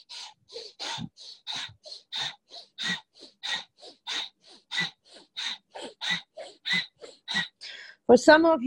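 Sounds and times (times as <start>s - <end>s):
rapid breathy puffs of a breathing exercise: 0.0s - 7.9s
speech: 8.1s - 8.6s.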